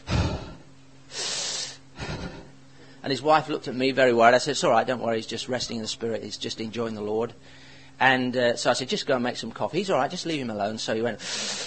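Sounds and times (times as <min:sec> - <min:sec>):
man imitating deep heavy breathing of a man resting on a settee: 0:00.0 - 0:02.6, 0:11.2 - 0:11.6
speech: 0:03.0 - 0:11.6.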